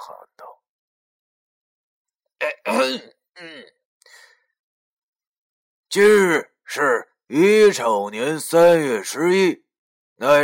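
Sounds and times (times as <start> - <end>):
person clearing throat: 2.4 - 3.7
speech: 2.4 - 3.8, 6.0 - 9.6, 10.2 - 10.4.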